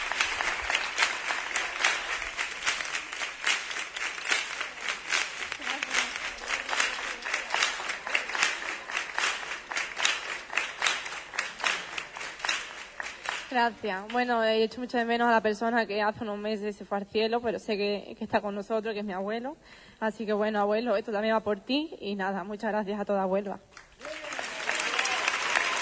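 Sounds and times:
audience applause: 0:00.0 - 0:13.6, 0:23.9 - 0:25.8
speech: 0:13.5 - 0:23.7.

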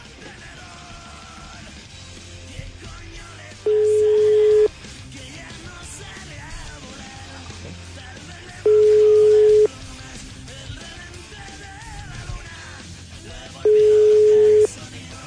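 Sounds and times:
telephone tones from a call that is not connecting: 0:03.6 - 0:04.7, 0:08.6 - 0:09.7, 0:13.6 - 0:14.8.

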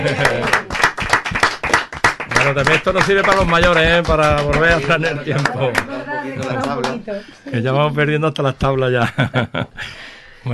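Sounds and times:
speech: 0:00.0 - 0:00.7, 0:02.4 - 0:10.5
laughter: 0:00.0 - 0:00.8, 0:09.0 - 0:09.9
applause: 0:00.0 - 0:07.0.

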